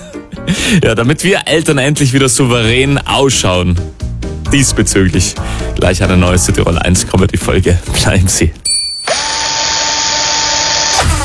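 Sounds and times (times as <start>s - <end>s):
speech: 0.4s - 8.6s
power drill whirring in a DeWalt tools radio ad: 9.1s - 11.2s.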